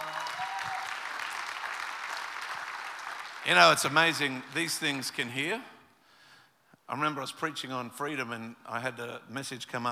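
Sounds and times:
audience clapping: 0:00.0 - 0:04.7
speech: 0:03.4 - 0:05.7, 0:06.9 - 0:09.9.

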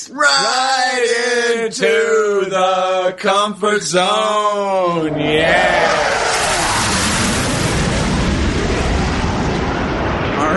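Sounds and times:
speech: 0:00.0 - 0:00.5, 0:01.7 - 0:06.3
jet engine: 0:05.0 - 0:10.5.

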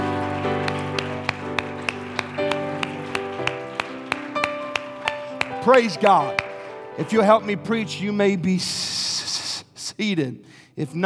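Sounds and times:
audience clapping hands: 0:00.0 - 0:07.2
speech: 0:05.6 - 0:06.4, 0:07.0 - 0:09.4, 0:10.0 - 0:11.0.

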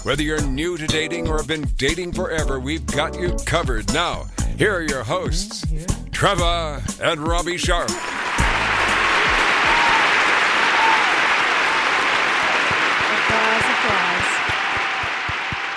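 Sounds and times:
speech: 0:00.0 - 0:08.4
applause: 0:07.9 - 0:15.7.

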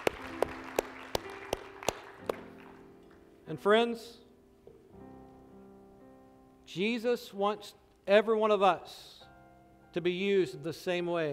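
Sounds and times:
audience applauding: 0:00.0 - 0:03.2
speech: 0:03.5 - 0:04.2, 0:06.8 - 0:09.2, 0:10.0 - 0:11.3.

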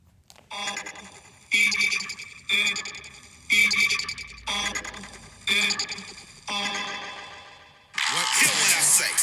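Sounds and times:
sustained notes opening a song: 0:00.5 - 0:08.0
harsh raspy scream in a played song: 0:08.0 - 0:09.2.

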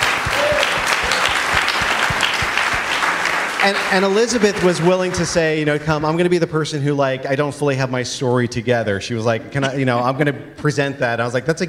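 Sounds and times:
audience applause: 0:00.0 - 0:05.7
speech: 0:03.6 - 0:11.6.

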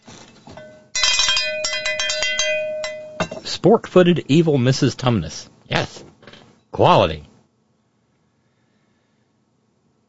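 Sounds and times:
bright metallic bell ringing: 0:00.6 - 0:03.5
speech: 0:03.6 - 0:06.1, 0:06.8 - 0:07.3.

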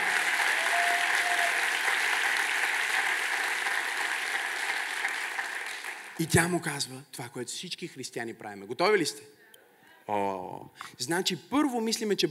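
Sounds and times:
audience applause: 0:00.0 - 0:06.2
speech: 0:06.2 - 0:09.4, 0:10.1 - 0:12.2.

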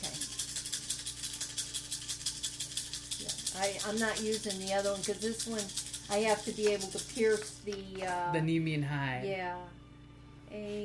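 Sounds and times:
dice rattling as they are shaken: 0:00.2 - 0:08.1
speech: 0:03.2 - 0:09.8, 0:10.5 - 0:10.8.

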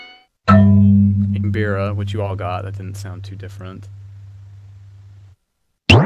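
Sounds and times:
low steady drum tone: 0:00.6 - 0:05.3
claves on bass drum with quick gliss: 0:00.8 - 0:04.7
speech: 0:01.5 - 0:04.0.

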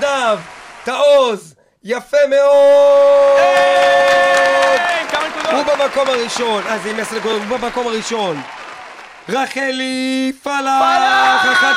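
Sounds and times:
audience applause: 0:00.0 - 0:01.3, 0:03.2 - 0:10.0, 0:10.8 - 0:11.7
loud sustained audience cheering: 0:00.0 - 0:01.4, 0:02.5 - 0:11.7
speech: 0:00.2 - 0:08.6, 0:09.3 - 0:11.7.

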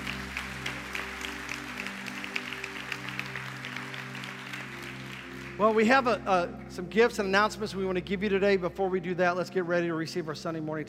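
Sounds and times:
audience clapping hands: 0:00.0 - 0:06.4
speech: 0:05.6 - 0:10.8.

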